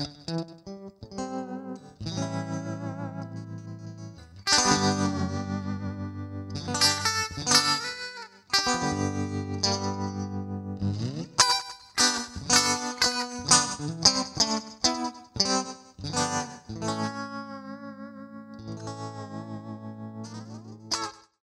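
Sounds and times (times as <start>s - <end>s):
country music: 0.1s - 21.1s.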